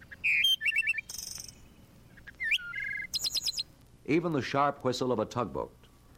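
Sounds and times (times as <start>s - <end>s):
bird song: 0.0s - 3.7s
speech: 4.1s - 5.8s.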